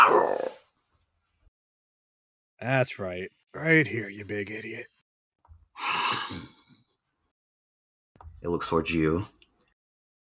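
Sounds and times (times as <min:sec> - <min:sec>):
voice imitating a monster's shriek: 0:00.0 - 0:00.6
speech: 0:02.6 - 0:04.9, 0:05.8 - 0:06.6, 0:08.4 - 0:09.4.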